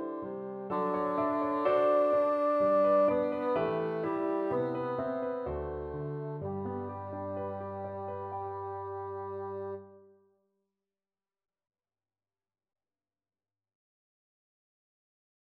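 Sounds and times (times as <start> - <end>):
bassoon melody: 0.0 - 10.0.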